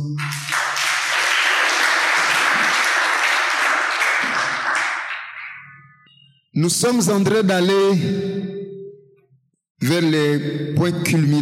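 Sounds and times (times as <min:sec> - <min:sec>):
audience applause: 0:00.2 - 0:05.6
speech: 0:06.6 - 0:08.6, 0:10.0 - 0:11.4.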